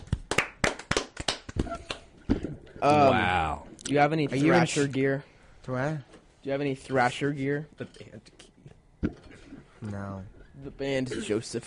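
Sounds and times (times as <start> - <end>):
round of applause: 0.0 - 2.0
speech: 2.8 - 8.4, 9.8 - 11.6.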